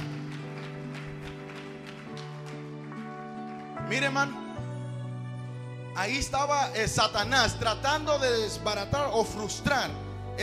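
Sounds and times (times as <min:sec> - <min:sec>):
audience applauding: 0:00.0 - 0:04.1
speech: 0:03.9 - 0:04.4, 0:06.0 - 0:10.4.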